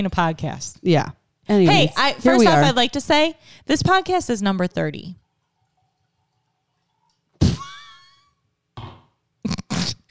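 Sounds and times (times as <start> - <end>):
speech: 0.0 - 5.2
glass of wine being poured: 5.1 - 8.3.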